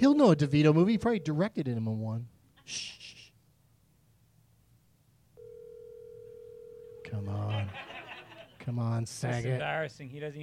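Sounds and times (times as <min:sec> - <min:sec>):
speech: 0:00.0 - 0:03.2, 0:07.1 - 0:07.9, 0:08.7 - 0:10.4
faint steady electronic ringing tone on an outgoing telephone call: 0:00.3 - 0:01.4, 0:05.4 - 0:07.2
laughter: 0:07.3 - 0:08.6.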